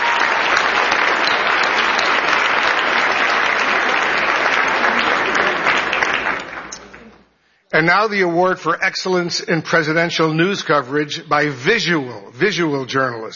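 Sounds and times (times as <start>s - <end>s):
audience applause: 0.0s - 7.3s
speech: 7.8s - 13.3s.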